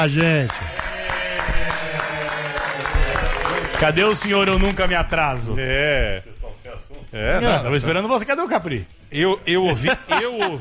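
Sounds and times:
speech: 0.0s - 0.8s, 3.8s - 10.5s
people applauding: 0.0s - 5.6s
laughter: 9.5s - 10.5s.

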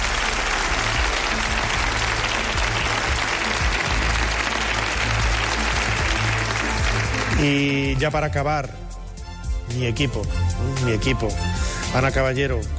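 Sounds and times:
loud applause from a large audience: 0.0s - 7.7s
speech: 7.4s - 8.8s, 9.7s - 12.7s.

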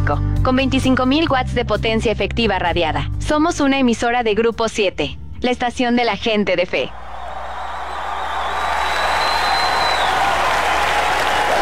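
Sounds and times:
speech: 0.1s - 7.0s
audience applause: 6.9s - 11.6s.

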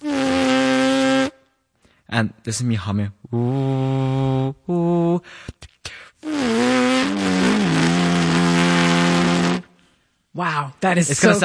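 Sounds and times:
lip buzzing without a horn: 0.0s - 1.5s, 3.4s - 5.2s, 6.2s - 9.8s
speech: 2.1s - 5.6s, 10.4s - 11.4s.

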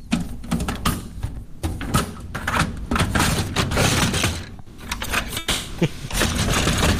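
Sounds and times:
printer paper tray drawer opening and closing: 1.8s - 6.9s.

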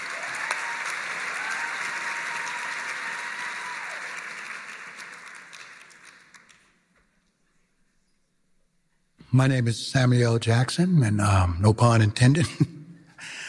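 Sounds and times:
audience applause: 0.0s - 6.8s
speech: 9.4s - 12.7s.

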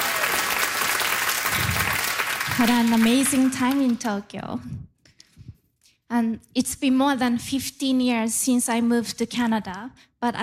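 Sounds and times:
audience applauding a speaker: 0.0s - 4.0s
speech: 2.6s - 4.9s, 6.1s - 10.4s.

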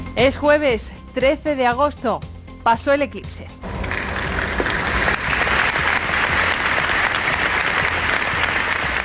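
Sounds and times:
speech: 0.2s - 3.8s
crowd applauding an eclipse: 3.6s - 9.0s.

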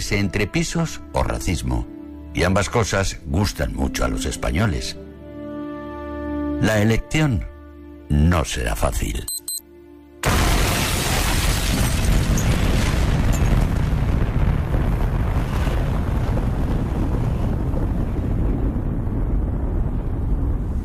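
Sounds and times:
speech: 0.0s - 5.0s, 6.6s - 7.5s, 8.1s - 9.3s
explosion sound effect: 10.2s - 20.8s
dense roaring rumble: 12.1s - 20.8s.

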